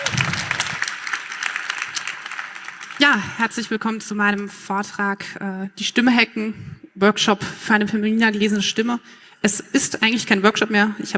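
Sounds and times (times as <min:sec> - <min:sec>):
audience applause welcoming a talk: 0:00.0 - 0:03.0
speech: 0:03.1 - 0:11.1.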